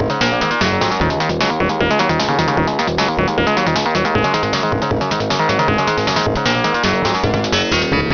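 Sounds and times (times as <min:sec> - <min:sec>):
Aureal Vortex AU8820B2 FM synthesis sound: 0:00.2 - 0:08.1.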